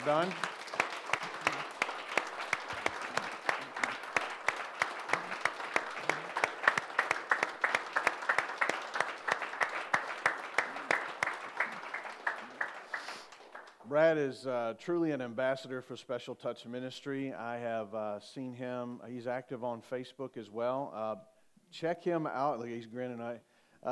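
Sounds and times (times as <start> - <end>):
speech: 0.0 - 0.5, 14.0 - 23.9
audience applause: 0.0 - 13.8.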